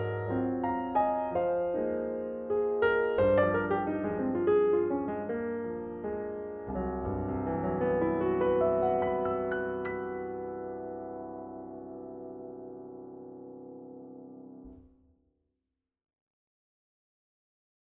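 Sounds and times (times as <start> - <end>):
Steinway piano: 0.0 - 15.0.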